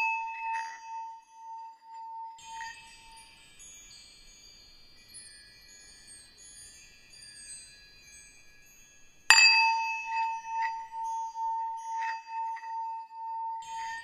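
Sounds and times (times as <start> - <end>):
bell ringing with a long steady tone: 0.0 - 3.2, 9.3 - 14.0
bright tinkling chimes: 0.0 - 14.0.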